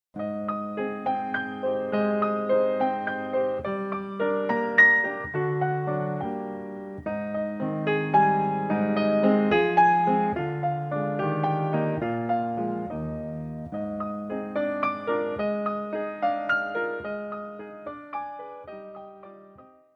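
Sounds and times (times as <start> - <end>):
waltz music: 0.2 - 18.6.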